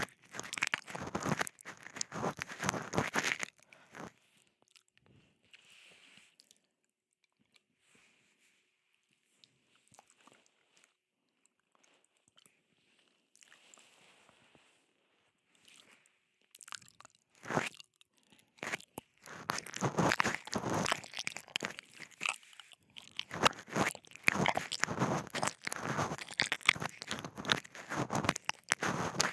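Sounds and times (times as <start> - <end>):
ear licking ASMR sounds: 0.0 - 4.1, 18.6 - 22.4, 23.0 - 29.3.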